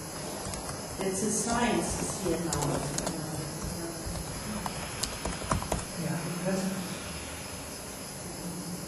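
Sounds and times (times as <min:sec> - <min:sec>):
steady hissing background: 0:00.0 - 0:08.8
light tapping of keys on a computer keyboard: 0:00.2 - 0:00.8, 0:01.8 - 0:06.0
speech: 0:01.0 - 0:03.2.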